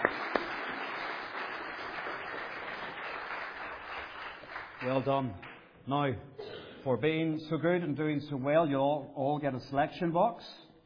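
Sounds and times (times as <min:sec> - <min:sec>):
children clapping: 0:00.0 - 0:05.7
speech: 0:04.8 - 0:10.6.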